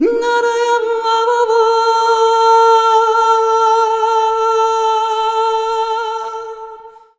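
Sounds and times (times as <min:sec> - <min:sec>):
Balkan-style traditional vocals: 0:00.0 - 0:07.1.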